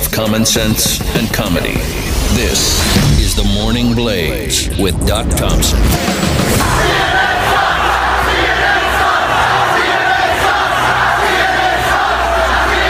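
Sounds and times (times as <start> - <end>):
speech: 0.2 - 7.2
crowd chanting at a rally: 6.3 - 12.8.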